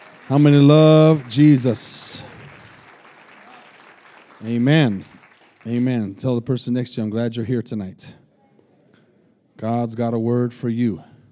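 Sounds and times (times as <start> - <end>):
audience clapping: 0.0 - 6.2
speech: 0.3 - 2.4, 4.4 - 8.2, 9.6 - 11.1.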